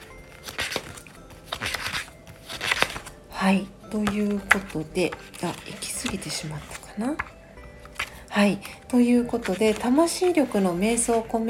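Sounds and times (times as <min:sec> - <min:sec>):
book pages turning: 0:00.0 - 0:11.4
speech: 0:03.4 - 0:07.4, 0:08.4 - 0:11.4.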